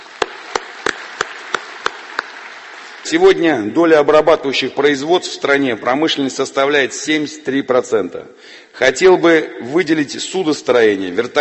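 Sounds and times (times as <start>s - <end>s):
audience applause: 0.0s - 3.5s
speech: 3.1s - 11.4s.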